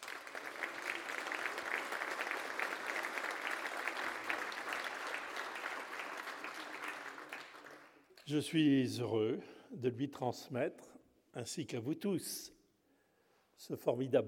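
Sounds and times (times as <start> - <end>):
applause: 0.0 - 8.5
speech: 8.3 - 12.6, 13.6 - 14.2.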